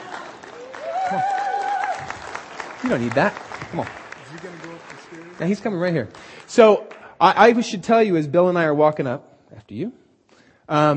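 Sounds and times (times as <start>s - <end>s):
audience clapping: 0.0s - 7.6s
speech: 1.1s - 1.4s, 2.8s - 10.0s, 10.7s - 10.9s.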